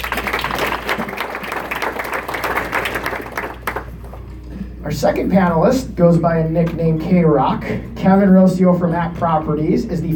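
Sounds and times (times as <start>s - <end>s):
audience applause welcoming a panelist: 0.0s - 4.2s
speech: 4.9s - 10.1s.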